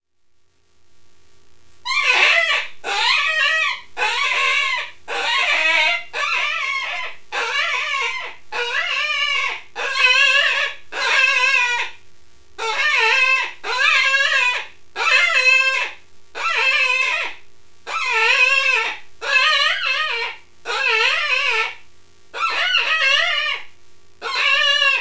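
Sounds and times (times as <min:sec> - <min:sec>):
rabbit squealing: 0:01.8 - 0:12.0, 0:12.6 - 0:24.9.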